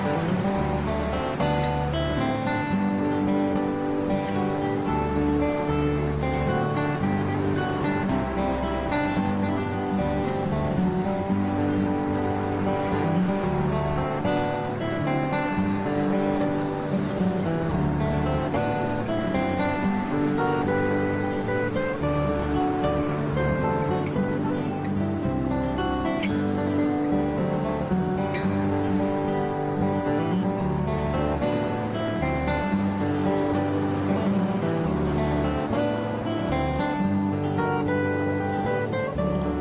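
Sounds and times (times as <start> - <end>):
ocean: 0.0 - 39.5
relaxing Hawaiian instrumental music: 0.0 - 39.5.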